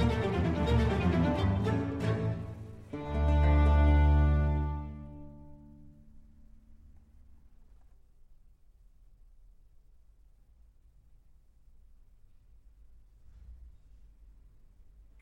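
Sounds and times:
strings playing an allegro in D minor: 0.0 - 6.3.

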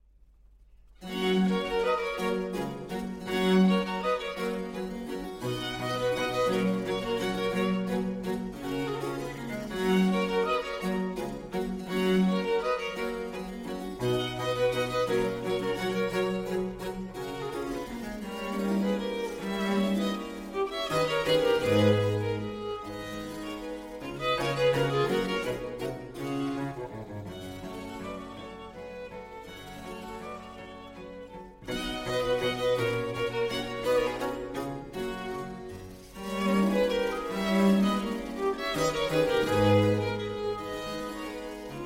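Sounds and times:
two violins playing a pastoral andante in G major: 1.0 - 41.8.

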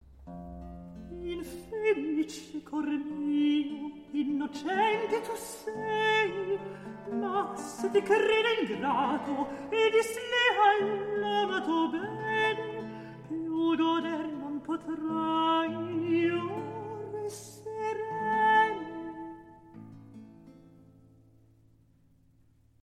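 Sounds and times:
recitative singing: 1.2 - 19.4.

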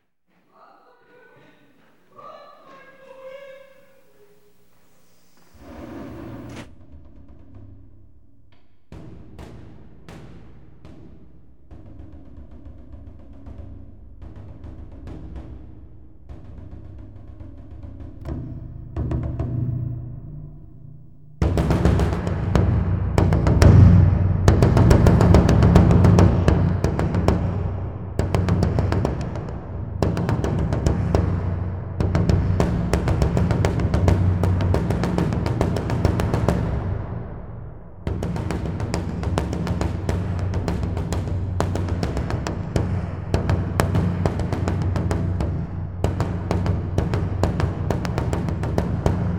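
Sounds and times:
percussion: 0.5 - 49.3.

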